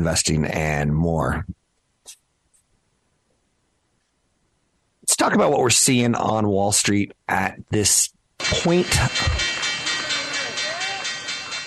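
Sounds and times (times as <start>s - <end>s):
speech: 0.0s - 2.2s, 5.1s - 9.5s
busy crowd noise: 8.4s - 11.6s
stock exchange opening bell ringing: 8.4s - 11.6s.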